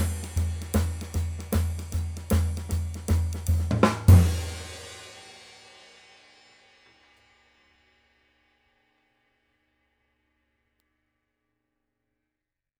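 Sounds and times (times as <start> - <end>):
20 K Flat Zildjian cymbal: 0.0 - 9.4.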